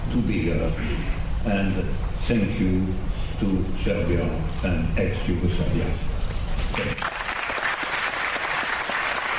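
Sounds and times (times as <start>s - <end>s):
speech: 0.2s - 6.1s, 6.8s - 7.2s
audience applause in a lecture hall at Dom kulture Studentski grad: 6.7s - 9.3s.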